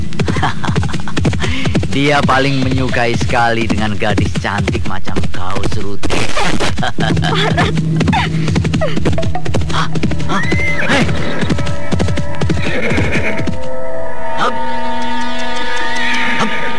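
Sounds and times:
laughter: 0:00.0 - 0:02.1, 0:06.1 - 0:11.9
speech: 0:02.0 - 0:11.8
horse neighing: 0:09.6 - 0:13.7, 0:14.5 - 0:16.7.

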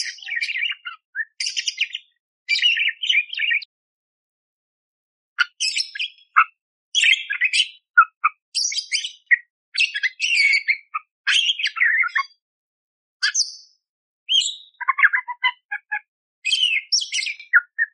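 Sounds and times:
budgerigar warbling song: 0:00.0 - 0:03.7, 0:05.4 - 0:12.4, 0:14.3 - 0:17.9.

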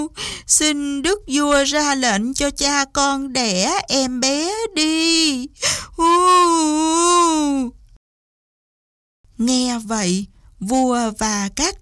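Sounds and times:
speech: 0:00.0 - 0:07.8, 0:09.4 - 0:11.8
child crying and wailing: 0:06.0 - 0:07.7.

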